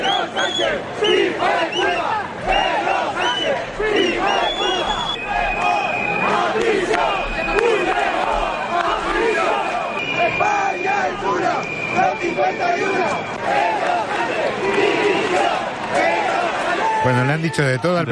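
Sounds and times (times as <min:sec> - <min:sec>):
shrill whistles: 0:00.0 - 0:07.9, 0:09.6 - 0:13.5
large crowd booing and shouting: 0:00.0 - 0:18.1
speech: 0:17.2 - 0:18.1.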